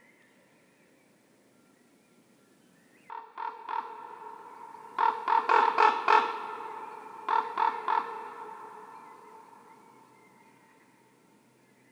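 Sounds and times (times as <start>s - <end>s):
Common Raven croaking: 3.1s - 10.2s.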